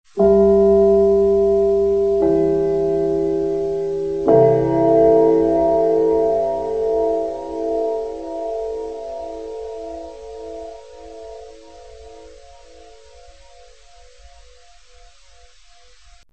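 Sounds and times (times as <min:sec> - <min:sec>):
gong: 0:00.2 - 0:15.8.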